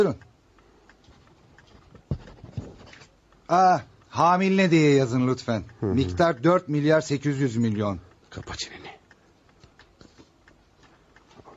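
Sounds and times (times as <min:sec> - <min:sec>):
speech: 0:00.0 - 0:00.3, 0:03.5 - 0:08.9
pen nib tapping on paper: 0:01.8 - 0:03.1.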